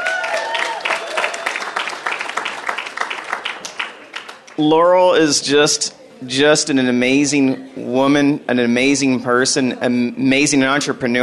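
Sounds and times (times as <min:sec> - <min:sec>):
audience applause: 0:00.0 - 0:04.6
speech: 0:04.6 - 0:11.2.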